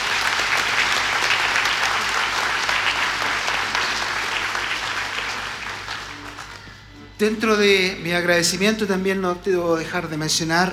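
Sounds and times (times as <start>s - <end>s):
big round of applause: 0.0s - 7.0s
speech: 7.2s - 10.7s.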